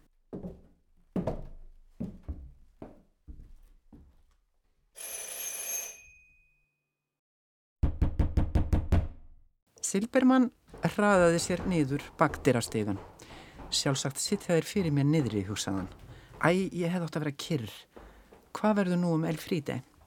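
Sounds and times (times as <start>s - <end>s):
knocking on a door: 7.8s - 9.2s, 10.7s - 16.8s
speech: 9.9s - 13.1s, 13.7s - 17.9s, 18.6s - 19.9s.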